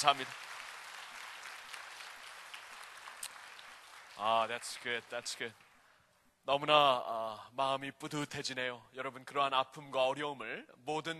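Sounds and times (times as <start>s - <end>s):
speech: 0.0s - 0.6s, 4.2s - 5.6s, 6.4s - 11.1s
audience applause: 0.0s - 5.8s.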